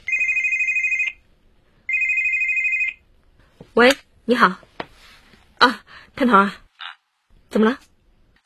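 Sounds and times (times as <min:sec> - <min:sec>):
mobile phone ringtone: 0:00.1 - 0:01.2, 0:01.9 - 0:03.0
speech: 0:03.8 - 0:04.7, 0:06.2 - 0:06.6, 0:07.6 - 0:07.8.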